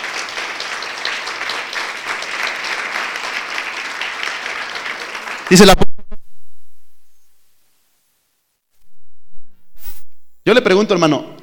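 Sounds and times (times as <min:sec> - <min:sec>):
audience applauding for God: 0:00.0 - 0:05.8
speech: 0:05.5 - 0:05.9, 0:10.5 - 0:11.4.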